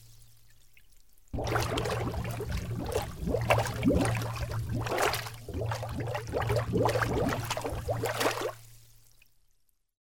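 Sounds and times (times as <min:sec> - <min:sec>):
bubbles from a pipe in a pool: 0:01.4 - 0:08.6.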